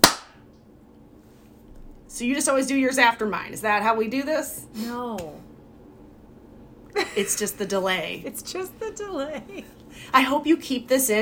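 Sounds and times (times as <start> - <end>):
hand clap struck to sync audio: 0.0 - 0.4
low hum: 0.0 - 11.2
speech: 2.2 - 5.4, 7.2 - 11.2
laughter: 7.0 - 9.8.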